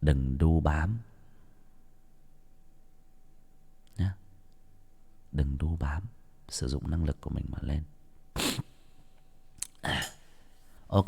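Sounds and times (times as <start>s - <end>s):
speech: 0.0s - 1.1s, 4.0s - 4.2s, 5.4s - 7.9s
person sniffling from a cold: 8.4s - 9.0s, 9.7s - 10.6s.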